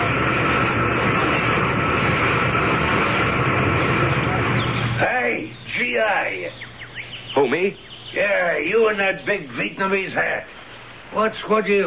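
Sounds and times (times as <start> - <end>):
large helicopter arriving: 0.0 - 6.5
speech: 7.4 - 11.8.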